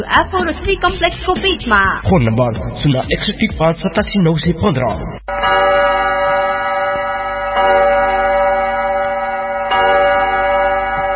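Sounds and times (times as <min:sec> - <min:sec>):
speech: 0:00.0 - 0:05.3
studio clock time signal marking 9 pm: 0:05.2 - 0:11.1.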